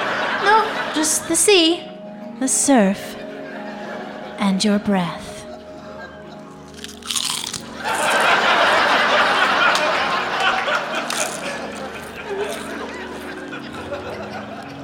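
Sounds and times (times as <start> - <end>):
laughter: 0.0 - 1.7, 3.0 - 14.8
speech: 0.6 - 3.2, 4.4 - 5.2
person eating crunchy potato chips: 6.5 - 8.3, 11.0 - 13.4.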